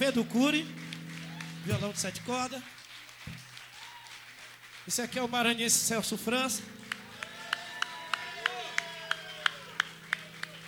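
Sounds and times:
speech: 0.0s - 0.9s, 1.6s - 3.4s, 4.8s - 6.8s
audience applause: 0.4s - 5.6s, 6.8s - 10.6s.

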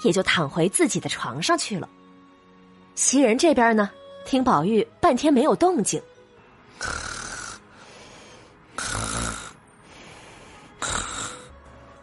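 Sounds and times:
speech: 0.0s - 2.0s, 3.0s - 6.1s
soft snoring: 6.8s - 7.8s, 8.7s - 11.5s.

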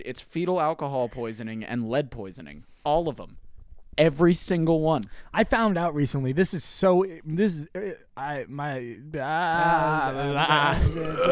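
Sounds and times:
speech: 0.0s - 3.4s, 4.0s - 11.3s
person making a screaming goat noise: 9.2s - 11.3s.

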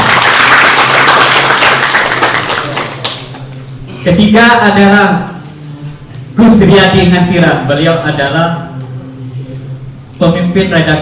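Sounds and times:
audience applause: 0.0s - 3.4s
speech: 4.0s - 5.3s, 6.4s - 8.6s, 10.2s - 10.9s.

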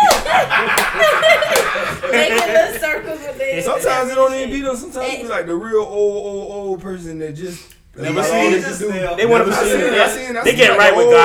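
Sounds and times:
hand clapping: 0.0s - 2.9s
laughter: 0.0s - 4.0s
speech: 4.0s - 11.2s.

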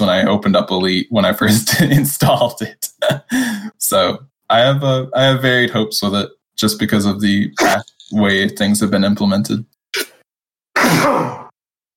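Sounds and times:
speech: 0.1s - 10.1s, 10.8s - 11.4s
loud sneeze: 10.8s - 11.6s.

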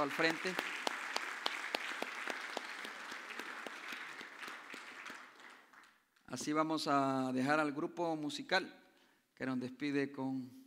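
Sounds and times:
speech: 0.0s - 0.8s, 6.3s - 8.8s, 9.4s - 10.6s
audience applause: 0.0s - 6.0s.

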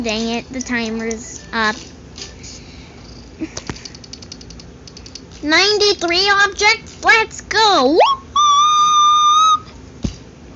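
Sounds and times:
speech: 0.0s - 2.6s, 3.4s - 3.7s, 5.4s - 8.2s
voice whistling like a bird: 8.0s - 9.8s.

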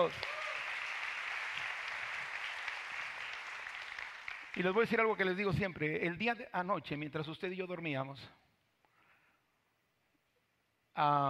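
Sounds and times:
speech: 0.0s - 0.3s, 4.6s - 8.4s, 11.0s - 11.2s
audience applause: 0.0s - 5.4s.

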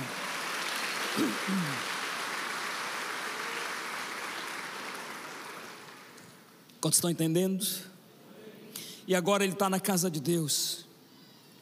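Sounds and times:
audience applauding: 0.0s - 6.4s
speech: 1.2s - 1.9s, 6.8s - 7.9s, 9.1s - 10.9s.

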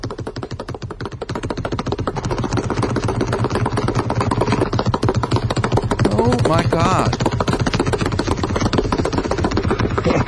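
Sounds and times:
basketball being dribbled rhythmically: 0.0s - 10.2s
speech: 6.3s - 7.2s.

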